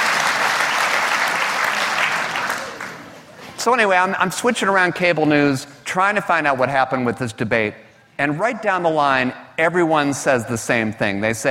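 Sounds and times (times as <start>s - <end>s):
audience applause at a stand-up comedy show: 0.0s - 3.2s
speech: 3.6s - 11.5s.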